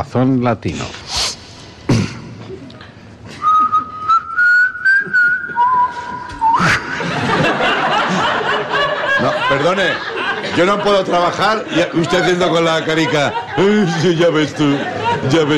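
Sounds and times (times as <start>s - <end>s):
speech: 0.0s - 1.0s, 9.5s - 15.5s
human whistling performance: 3.3s - 7.0s
laughter: 5.0s - 15.5s.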